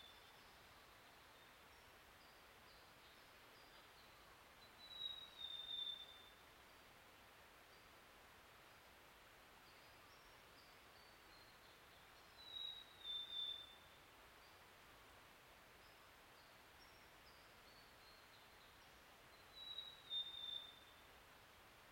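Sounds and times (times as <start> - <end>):
Swynnerton's robin: 2.2 - 6.4, 9.6 - 14.6, 15.8 - 21.0.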